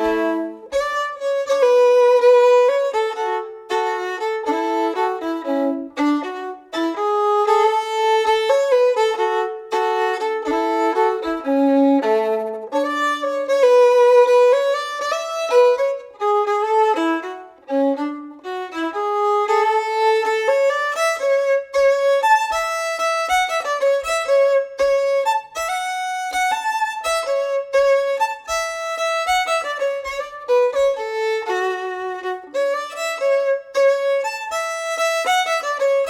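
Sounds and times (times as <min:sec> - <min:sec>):
fiddle playing steadily: 0:00.0 - 0:36.0.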